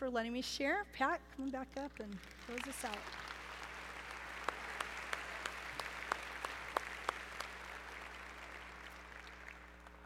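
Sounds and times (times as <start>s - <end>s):
speech: 0.0s - 3.3s
quiet steady hum: 0.0s - 10.0s
light scattered audience applause: 2.1s - 10.0s.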